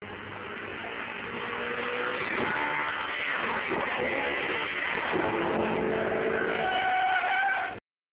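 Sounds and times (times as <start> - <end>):
engine: 0.0 - 7.8.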